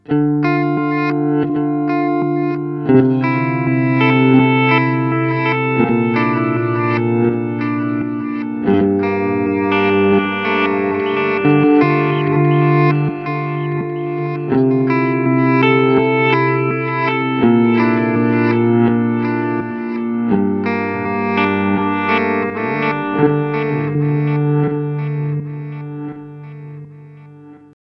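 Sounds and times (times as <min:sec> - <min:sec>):
Chase Bliss Blooper looper pedal effect: 0:00.0 - 0:27.7.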